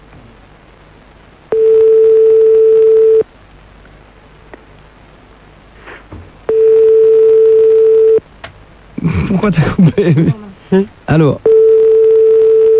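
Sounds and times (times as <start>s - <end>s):
phone line ringing while calling back: 1.5s - 3.2s, 6.5s - 8.2s, 11.4s - 12.7s
laughter: 9.0s - 10.5s
speech: 9.4s - 11.5s.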